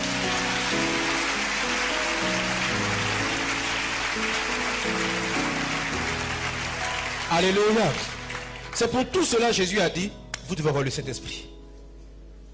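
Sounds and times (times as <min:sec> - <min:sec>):
church congregation applauding: 0:00.0 - 0:09.8
sustained musical chords: 0:00.0 - 0:11.8
speech: 0:07.4 - 0:08.1, 0:08.8 - 0:11.5.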